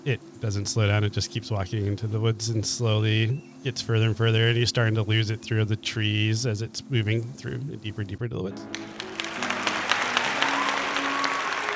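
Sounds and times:
speech: 0.0s - 9.0s
faint sustained musical tone: 0.0s - 11.7s
crowd applause at an inn: 8.7s - 11.7s.

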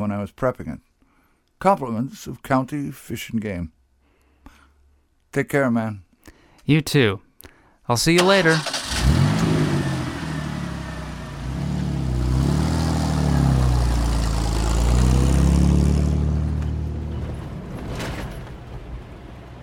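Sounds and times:
speech: 0.0s - 0.9s, 1.6s - 3.8s, 5.3s - 6.0s, 6.7s - 7.2s, 7.9s - 9.2s
car driving away on sand road: 8.5s - 19.6s.

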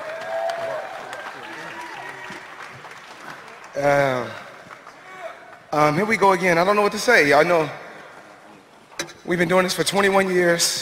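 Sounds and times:
audience clapping: 0.0s - 6.1s
speech: 3.8s - 4.4s, 5.7s - 7.8s, 9.3s - 10.8s.

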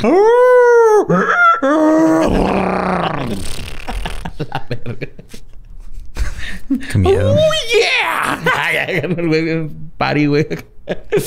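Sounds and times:
speech: 0.0s - 0.4s, 1.1s - 1.8s, 4.6s - 5.4s, 7.0s - 11.2s
person vocally imitating a monstrous beast howling, yelping and braying: 0.0s - 3.5s, 7.0s - 8.6s
laughter: 1.1s - 5.4s, 8.2s - 9.3s.

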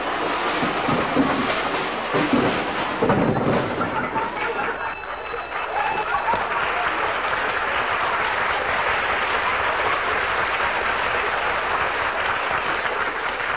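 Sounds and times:
closet contents clattering and crashing down: 0.0s - 5.6s
audience applauding: 0.0s - 13.5s
audience laughing: 3.6s - 7.3s.

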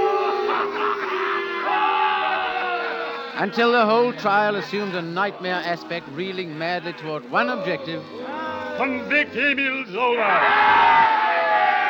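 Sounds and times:
crowd jeering: 0.0s - 11.8s
speech: 3.4s - 8.2s, 8.8s - 11.0s.

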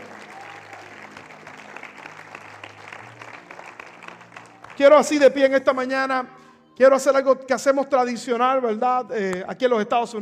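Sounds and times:
audience applause: 0.0s - 5.2s
speech: 4.8s - 10.2s.

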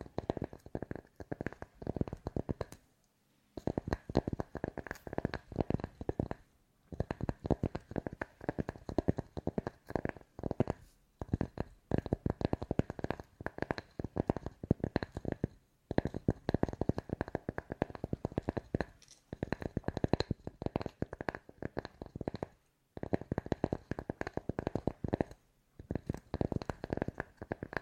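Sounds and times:
ASMR fast tapping: 0.0s - 2.8s, 3.6s - 27.8s.

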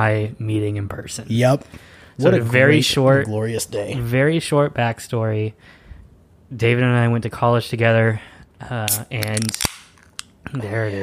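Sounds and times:
speech: 0.0s - 5.8s, 6.5s - 9.7s, 10.5s - 11.0s
cold beer can cracking open: 8.9s - 10.4s.

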